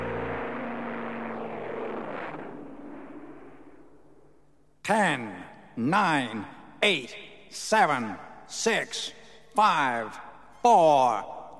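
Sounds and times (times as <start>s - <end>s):
airplane taking off from a runway: 0.0s - 3.4s
speech: 4.9s - 11.4s.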